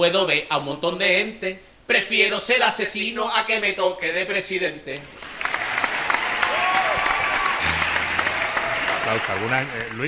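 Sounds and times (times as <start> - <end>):
speech: 0.0 - 5.3, 9.1 - 10.0
canned applause sound effect: 5.2 - 10.0.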